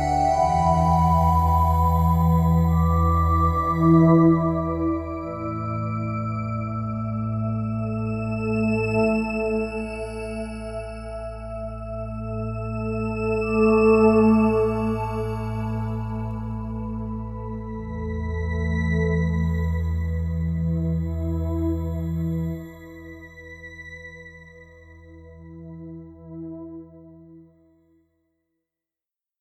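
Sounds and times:
Roland JD800 synthesizer: 0:00.0 - 0:27.8.

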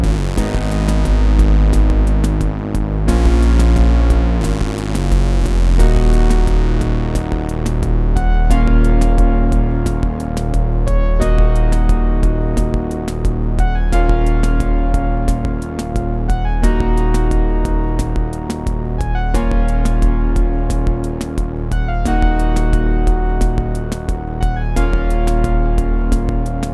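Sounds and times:
Arturia MiniBrute 2 synthesizer short melody: 0:00.0 - 0:26.7.

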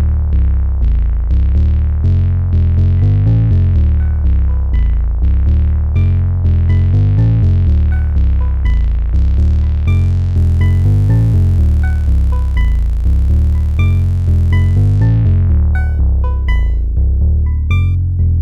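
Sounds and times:
analogue synthesizer bass: 0:00.0 - 0:18.3.

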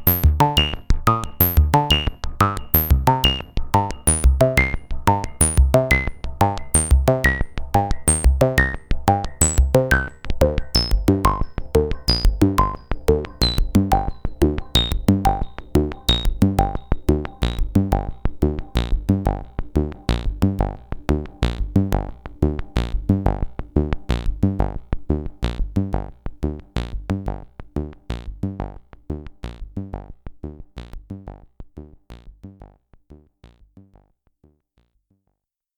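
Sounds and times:
single VCO synthesizer sequence through resonant four-pole low-pass filter: 0:00.0 - 0:28.8.

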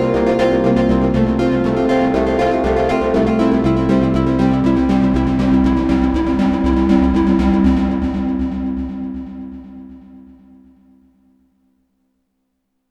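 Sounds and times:
Modal A8 synthesizer plucked arpeggio: 0:00.0 - 0:10.0.

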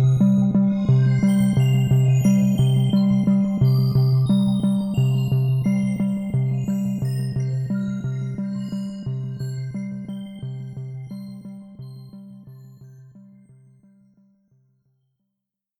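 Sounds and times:
Studiologic Sledge synthesizer: 0:00.0 - 0:13.4.

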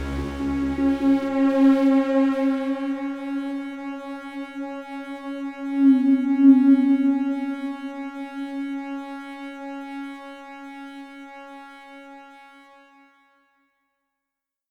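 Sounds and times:
synthesizer playing octaves: 0:00.1 - 0:10.3.

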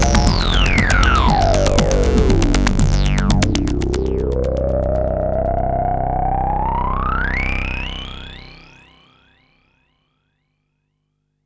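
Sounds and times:
synthesizer: 0:00.0 - 0:09.2.

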